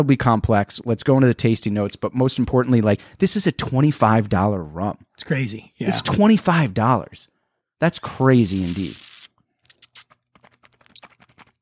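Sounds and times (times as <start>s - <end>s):
speech: 0.0s - 9.2s
crunchy chewing: 9.7s - 11.6s.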